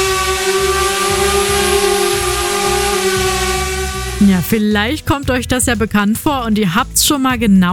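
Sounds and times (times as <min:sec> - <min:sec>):
drone buzzing: 0:00.0 - 0:04.8
speech: 0:04.5 - 0:07.7.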